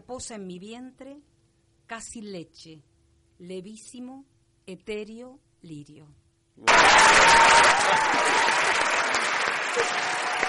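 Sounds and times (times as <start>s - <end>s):
speech: 0.1s - 1.3s, 1.9s - 8.9s, 9.8s - 10.2s
audience applause: 6.7s - 10.4s.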